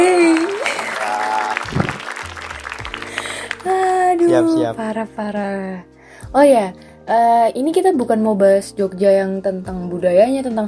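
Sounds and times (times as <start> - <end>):
applause: 0.0 - 4.6
speech: 4.3 - 10.6.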